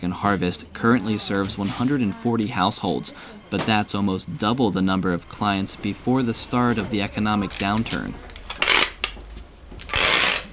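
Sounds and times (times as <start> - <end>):
speech: 0.1 - 8.3
masking tape pulled to seal a cardboard box at a Tokyo food pantry: 7.4 - 9.2, 9.8 - 10.5.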